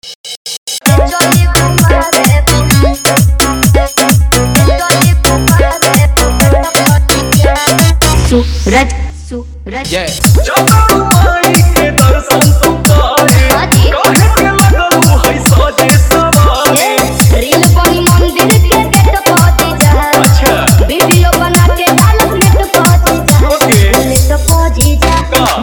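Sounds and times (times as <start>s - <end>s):
remix music: 0.0s - 25.6s.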